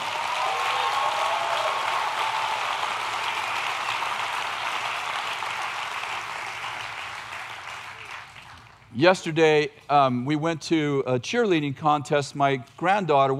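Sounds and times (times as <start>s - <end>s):
audience clapping: 0.0s - 8.9s
speech: 9.0s - 13.3s.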